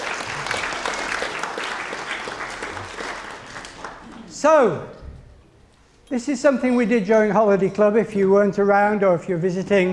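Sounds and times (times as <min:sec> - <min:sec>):
audience applause: 0:00.0 - 0:04.3
speech: 0:04.4 - 0:05.0, 0:06.1 - 0:09.9.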